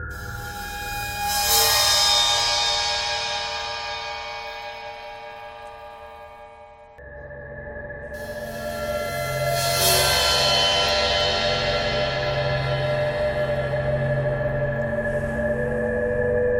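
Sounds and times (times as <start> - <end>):
bowed cymbal: 0.1 - 7.0, 8.1 - 16.5.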